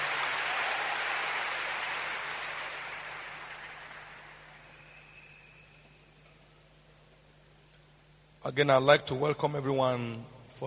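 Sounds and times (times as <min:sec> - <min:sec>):
church congregation applauding: 0:00.0 - 0:06.0
speech: 0:08.4 - 0:10.6.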